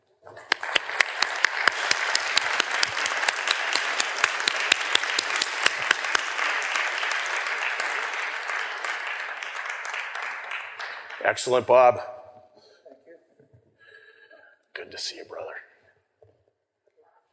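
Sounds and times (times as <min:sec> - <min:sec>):
audience applause: 0:00.0 - 0:12.0
speech: 0:11.3 - 0:12.2.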